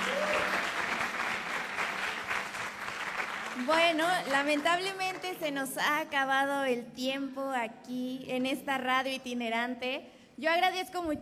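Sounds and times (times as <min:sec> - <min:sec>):
loud audience applause: 0:00.0 - 0:05.3
speech: 0:03.6 - 0:11.1.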